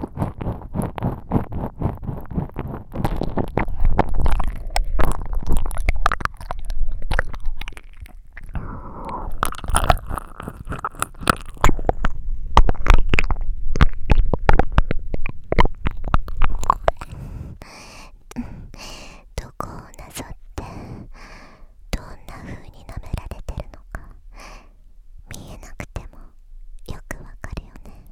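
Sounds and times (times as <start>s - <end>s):
ear licking: 0.0s - 17.7s.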